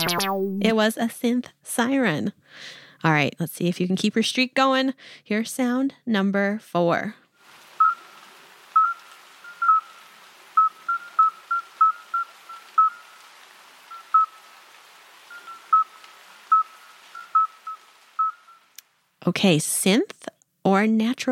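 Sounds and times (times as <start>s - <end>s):
speech: 0.0s - 7.2s, 19.3s - 21.3s
midwife toad call: 7.8s - 8.2s, 8.8s - 13.2s, 13.9s - 14.5s, 15.3s - 18.7s.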